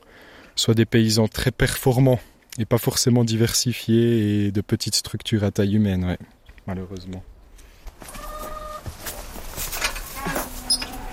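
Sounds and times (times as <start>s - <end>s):
speech: 0.6s - 7.3s
chickens clucking on a farm: 8.0s - 11.1s.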